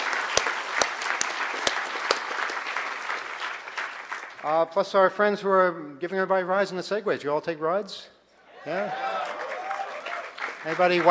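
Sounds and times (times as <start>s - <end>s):
audience applause: 0.0s - 4.6s, 8.7s - 11.0s
speech: 4.4s - 9.5s, 10.6s - 11.0s.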